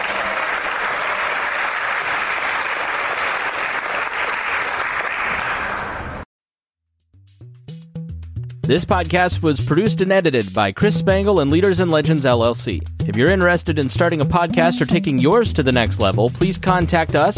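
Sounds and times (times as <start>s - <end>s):
audience applause: 0.0s - 6.2s
speech: 8.7s - 17.3s.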